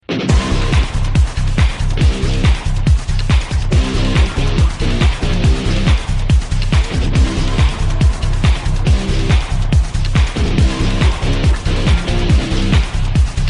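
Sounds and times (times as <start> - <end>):
remix music: 0.0 - 13.4.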